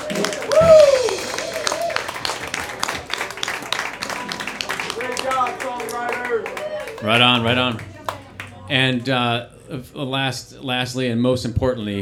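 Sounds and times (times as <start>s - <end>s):
whoops and cheering voices: 0.0s - 2.9s, 5.0s - 7.0s
crowd applause: 0.0s - 9.4s
speech: 7.0s - 7.9s, 8.7s - 12.0s.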